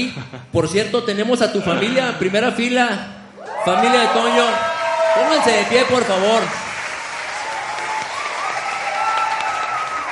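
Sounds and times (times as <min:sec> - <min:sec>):
speech: 0:00.0 - 0:06.6
audience applause: 0:04.6 - 0:10.1.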